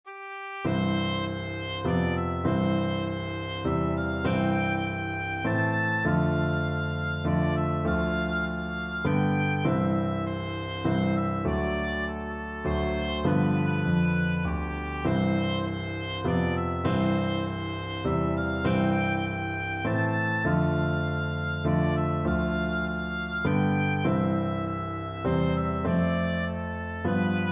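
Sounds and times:
oboe melody: 0:00.1 - 0:27.5.

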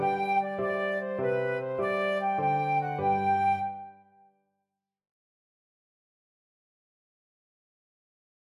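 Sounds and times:
flute playing a jig: 0:00.0 - 0:04.2.

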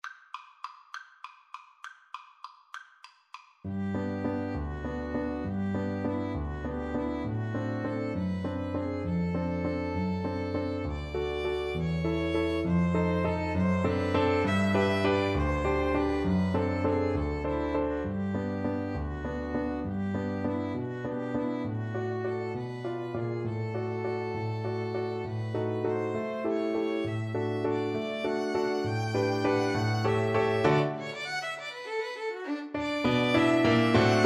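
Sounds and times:
piano trio: 0:03.7 - 0:34.2.

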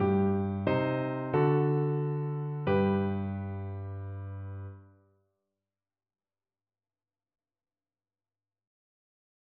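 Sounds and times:
piano: 0:00.0 - 0:05.1.

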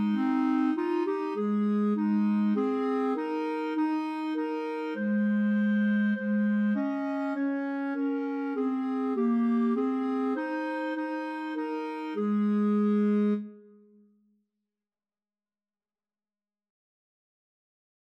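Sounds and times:
clarinet trio: 0:00.0 - 0:13.8.

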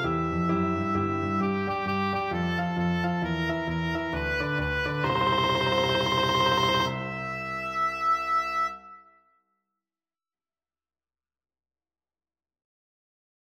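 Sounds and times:
oboe playing a boogie: 0:00.0 - 0:08.8.

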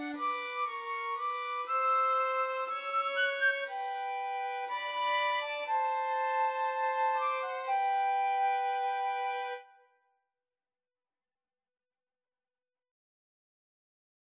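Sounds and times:
violin: 0:00.0 - 0:09.8
flute: 0:00.0 - 0:10.0.

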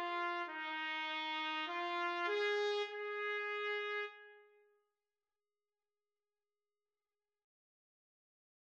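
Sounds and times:
trumpet duet: 0:00.0 - 0:04.4.

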